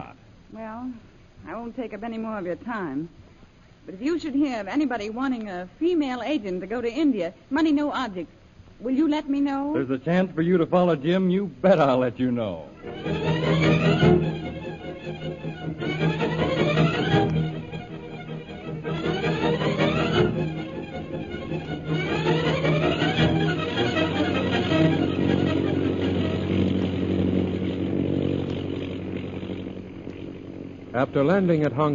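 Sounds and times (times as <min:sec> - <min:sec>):
speech: 0:00.5 - 0:03.2, 0:03.9 - 0:13.2, 0:31.0 - 0:31.9
propeller airplane engine droning in flight: 0:09.8 - 0:31.9.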